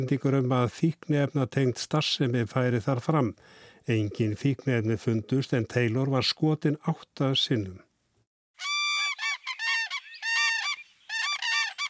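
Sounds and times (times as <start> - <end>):
speech: 0.0 - 7.9
common cranes calling: 8.6 - 11.8.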